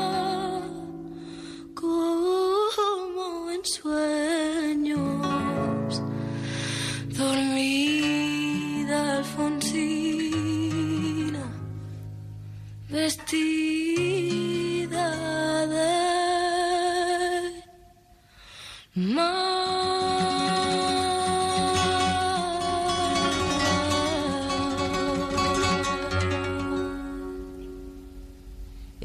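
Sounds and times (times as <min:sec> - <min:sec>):
woman singing: 0:00.0 - 0:12.0, 0:12.8 - 0:18.1, 0:18.8 - 0:27.6.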